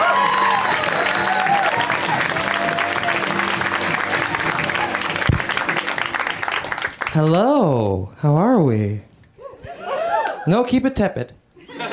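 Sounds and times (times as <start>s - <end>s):
audience clapping greeting a comedian: 0.0s - 7.5s
speech: 7.2s - 9.1s, 10.4s - 11.4s.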